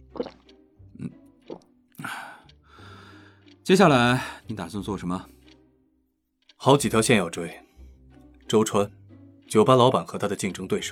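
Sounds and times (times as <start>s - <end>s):
slurping gulp of water: 0.0s - 2.1s
person sipping water from a cup: 0.0s - 2.2s
speech: 3.7s - 5.4s, 6.6s - 7.6s, 8.5s - 10.9s.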